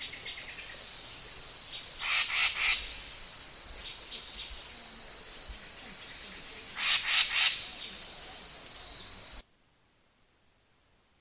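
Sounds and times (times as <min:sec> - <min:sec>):
magpie calling: 0:02.0 - 0:03.0, 0:06.7 - 0:08.1.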